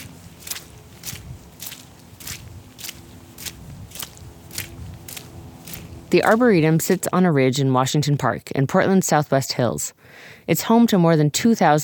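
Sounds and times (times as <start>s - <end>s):
footsteps on a muddy trail: 0.0s - 7.3s
low constant rumble: 0.0s - 7.7s
speech: 6.1s - 11.8s.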